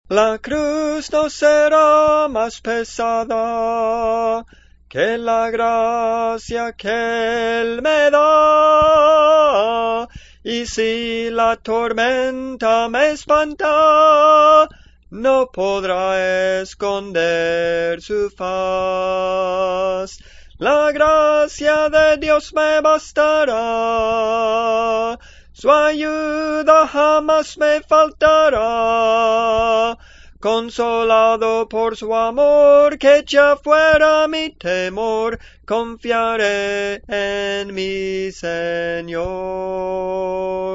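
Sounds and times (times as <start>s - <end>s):
tenor singing spiritual songs: 0.1s - 40.7s.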